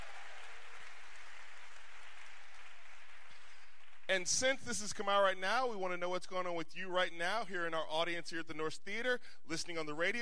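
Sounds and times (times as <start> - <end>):
theater audience applause at a live show: 0.0 - 4.1
speech: 4.1 - 10.1.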